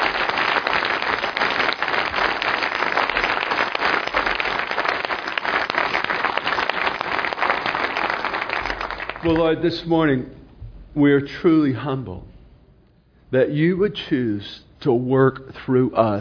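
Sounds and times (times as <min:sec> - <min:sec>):
audience applauding: 0:00.0 - 0:09.6
speech: 0:09.3 - 0:10.4, 0:11.0 - 0:12.3, 0:13.3 - 0:16.1.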